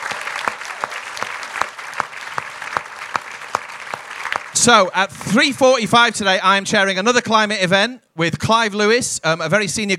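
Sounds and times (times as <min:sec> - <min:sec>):
audience applause: 0:00.0 - 0:04.9
speech: 0:04.6 - 0:09.9.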